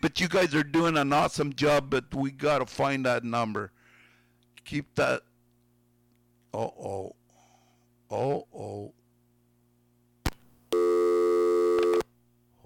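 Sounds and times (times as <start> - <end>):
speech: 0.0 - 3.8, 4.6 - 5.3, 6.5 - 7.2, 8.1 - 9.0
buzzing tone on a phone line: 10.7 - 12.1.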